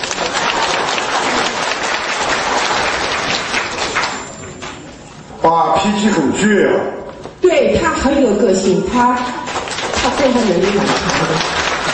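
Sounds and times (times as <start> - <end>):
crowd applause: 0.0 - 4.8, 9.4 - 11.9
speech: 5.4 - 9.4, 10.2 - 11.6.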